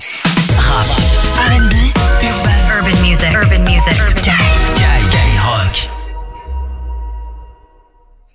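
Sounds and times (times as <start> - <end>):
Christmas jingle: 0.0 - 8.3.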